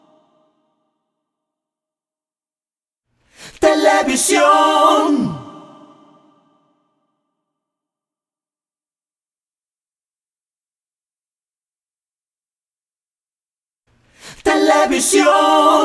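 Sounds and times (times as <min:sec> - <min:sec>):
voices singing an a cappella jingle: 0:03.6 - 0:05.5, 0:14.4 - 0:15.8.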